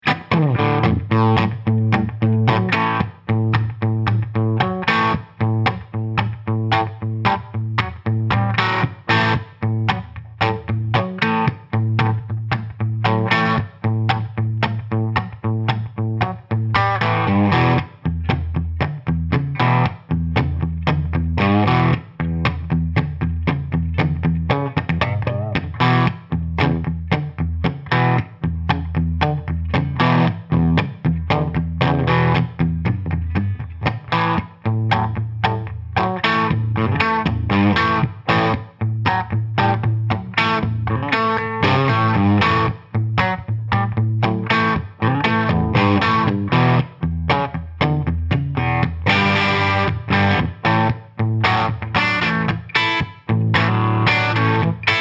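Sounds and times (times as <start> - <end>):
Gibson Les Paul electric guitar through Marshall amplifier: 0.0 - 54.9.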